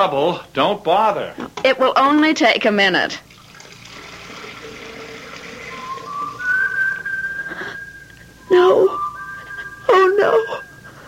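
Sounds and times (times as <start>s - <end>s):
speech: 0.0s - 3.3s, 8.5s - 9.0s
kettle whistling: 3.6s - 11.0s.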